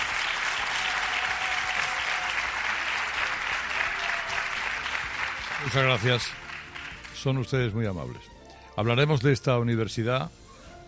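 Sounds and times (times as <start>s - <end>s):
large audience applauding: 0.0s - 7.5s
speech: 5.6s - 6.4s, 7.2s - 10.8s.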